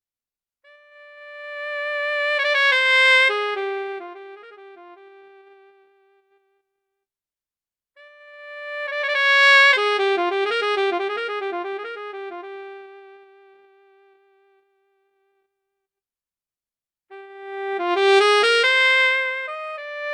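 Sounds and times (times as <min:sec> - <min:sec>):
YDS-120 alto saxophone: 0:00.7 - 0:06.4, 0:08.0 - 0:15.2, 0:17.1 - 0:20.1.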